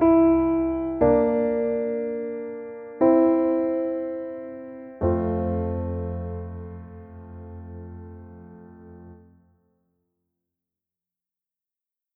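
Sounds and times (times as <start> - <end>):
piano accompaniment: 0.0 - 9.5.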